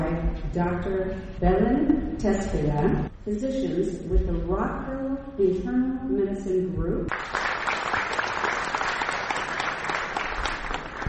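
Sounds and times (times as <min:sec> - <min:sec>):
speech: 0:00.5 - 0:07.5
hall audience applause as a married pair of physicians is introduced: 0:07.1 - 0:11.0.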